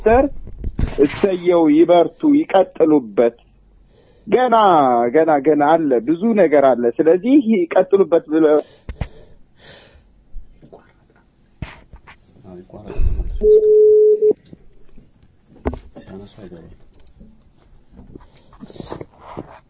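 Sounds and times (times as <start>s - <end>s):
speech: 0.0s - 3.4s, 4.2s - 8.9s, 12.5s - 13.9s, 16.1s - 16.8s
mobile phone tone while adding callers to a conference call: 13.4s - 14.4s.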